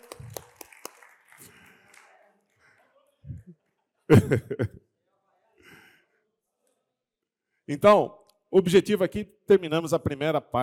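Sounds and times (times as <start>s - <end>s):
audience clapping: 0.0s - 3.0s
laughter: 4.1s - 4.8s
speech: 4.1s - 4.8s, 7.7s - 10.6s.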